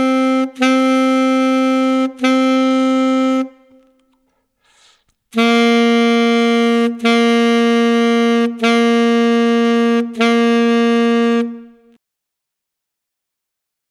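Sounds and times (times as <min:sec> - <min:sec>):
alto saxophone whole note: 0:00.0 - 0:03.9, 0:05.3 - 0:12.0.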